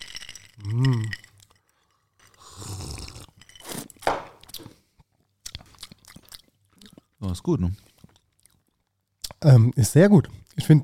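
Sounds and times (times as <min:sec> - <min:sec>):
ice cubes crunching and clinking in a glass: 0:00.0 - 0:04.0
speech: 0:07.3 - 0:07.9, 0:09.4 - 0:10.8.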